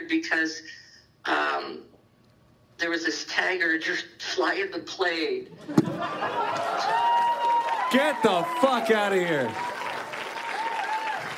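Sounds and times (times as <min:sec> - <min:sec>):
speech: 0:00.1 - 0:02.0, 0:02.8 - 0:07.2, 0:07.9 - 0:09.7
laughter: 0:05.6 - 0:07.3
audience applauding: 0:06.3 - 0:11.3.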